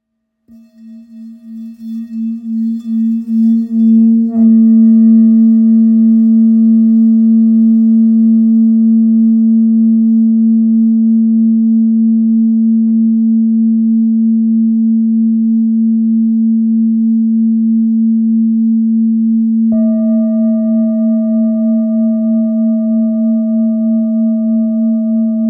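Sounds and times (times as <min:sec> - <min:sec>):
old singing bowl in A: 0:00.5 - 0:25.4.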